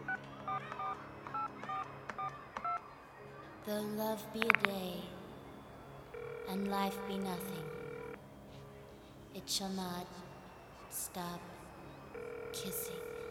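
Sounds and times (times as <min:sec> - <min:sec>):
dual-tone dialing beeps on a telephone hanging in a hallway: 0:00.1 - 0:02.8, 0:06.1 - 0:08.2, 0:12.2 - 0:13.2
speech: 0:03.7 - 0:05.1, 0:06.5 - 0:07.7, 0:09.5 - 0:10.3, 0:10.9 - 0:11.5, 0:12.5 - 0:13.1.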